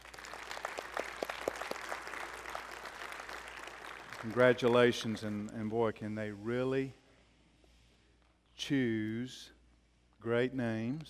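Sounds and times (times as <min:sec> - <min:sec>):
audience applause: 0:00.0 - 0:05.1
speech: 0:04.2 - 0:07.0, 0:08.7 - 0:09.6, 0:10.2 - 0:11.0.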